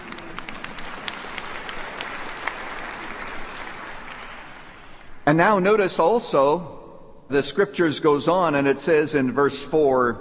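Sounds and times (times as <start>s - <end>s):
audience clapping: 0.0s - 5.2s
speech: 5.3s - 10.1s.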